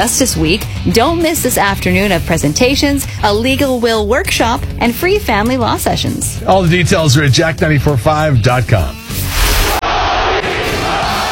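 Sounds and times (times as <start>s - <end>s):
speech: 0.0s - 9.0s
Russian crowd chanting an American's name: 9.8s - 11.2s.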